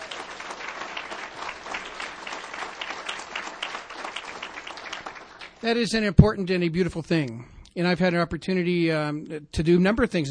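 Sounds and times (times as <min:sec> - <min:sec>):
audience applause: 0:00.0 - 0:05.6
speech: 0:05.6 - 0:10.2.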